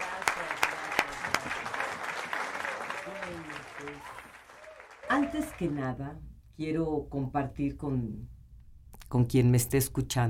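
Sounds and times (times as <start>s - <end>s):
crowd applause welcoming someone: 0.0s - 5.9s
speech: 5.2s - 8.3s, 9.1s - 10.2s.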